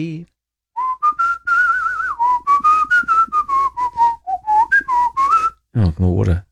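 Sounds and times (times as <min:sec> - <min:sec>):
speech: 0:00.0 - 0:00.3, 0:05.8 - 0:06.5
person whistling a bouncy theme tune: 0:00.8 - 0:05.6.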